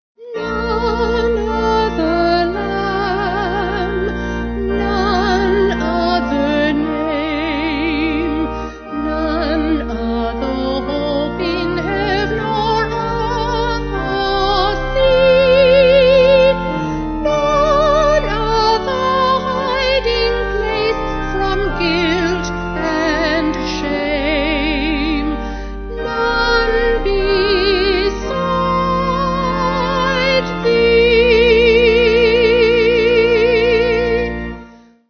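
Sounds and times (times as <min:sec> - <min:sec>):
vocal organ: 0:00.2 - 0:35.0.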